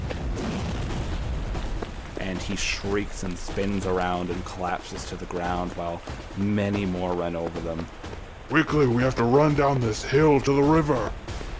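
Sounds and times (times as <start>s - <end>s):
flame bursting and slamming down: 0.0s - 8.9s
speech: 2.4s - 11.2s.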